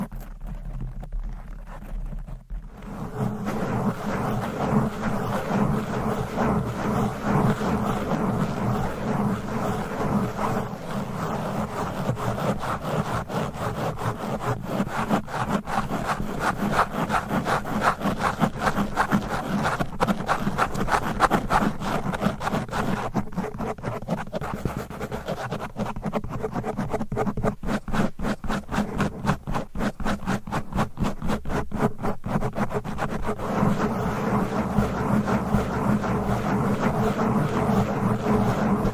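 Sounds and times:
microphone scratching: 0.0s - 38.9s.

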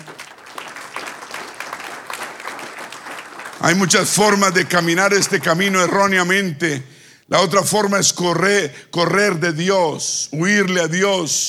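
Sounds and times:
audience applauding: 0.0s - 6.3s
speech: 3.6s - 11.4s.

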